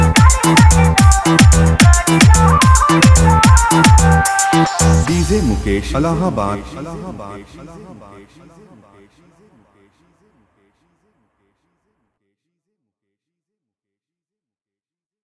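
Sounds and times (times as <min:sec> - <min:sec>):
Bhojpuri remix song: 0:00.0 - 0:08.8.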